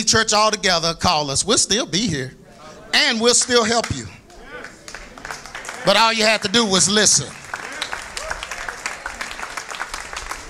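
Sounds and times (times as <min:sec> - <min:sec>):
speech: 0:00.0 - 0:04.2, 0:05.8 - 0:07.4
hand claps: 0:03.8 - 0:06.5, 0:07.2 - 0:10.4.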